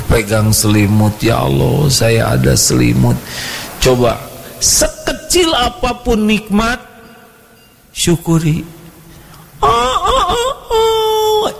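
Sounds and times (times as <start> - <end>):
speech: 0.1 - 6.9, 8.0 - 8.8
chicken calling: 9.6 - 11.5.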